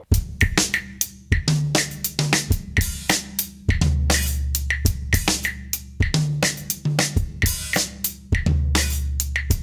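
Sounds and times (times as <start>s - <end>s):
Afro-Cuban rhythm patterns on drum kit: 0.1s - 9.6s.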